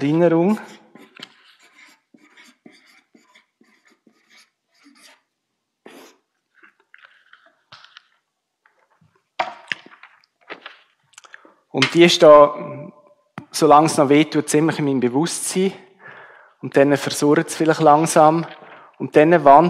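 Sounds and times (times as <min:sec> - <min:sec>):
speech: 0:00.0 - 0:00.8, 0:11.7 - 0:12.8, 0:13.6 - 0:15.8, 0:16.6 - 0:19.6
writing: 0:00.1 - 0:05.3.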